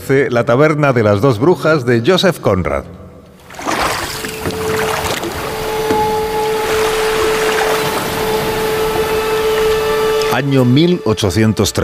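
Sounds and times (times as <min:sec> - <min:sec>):
speech: 0:00.1 - 0:03.0, 0:10.4 - 0:11.8
water washing around an English sloop approaching the coast of Asturias: 0:03.4 - 0:10.5
low motor-like hum: 0:03.4 - 0:11.8.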